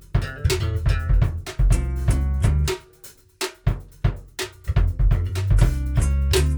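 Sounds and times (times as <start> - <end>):
groove music snippet: 0.1 - 3.1, 4.5 - 6.5.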